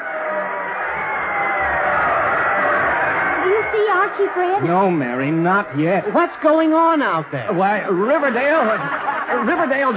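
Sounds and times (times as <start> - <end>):
football stadium crowd cheering: 0.0 - 9.9
laughter: 3.4 - 9.9
speech: 4.1 - 9.9.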